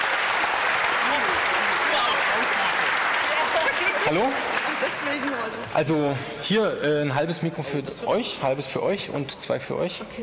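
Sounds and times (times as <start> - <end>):
audience applause: 0.0 - 5.8
speech: 3.8 - 10.2.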